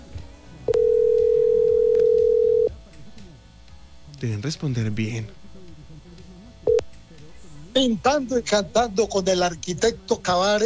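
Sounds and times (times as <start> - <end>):
faint noise: 0.0 - 10.6
telephone dial tone: 0.7 - 2.7
speech: 4.2 - 5.4, 7.8 - 10.6.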